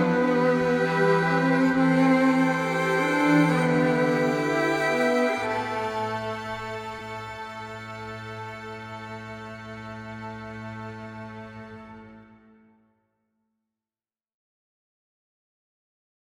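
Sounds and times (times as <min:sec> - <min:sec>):
strings: 0:00.0 - 0:12.7.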